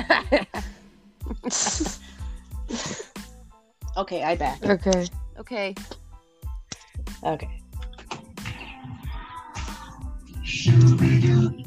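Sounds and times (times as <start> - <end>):
person coughing: 1.3 - 2.0
speech: 4.0 - 6.0, 7.2 - 7.6, 10.5 - 11.6.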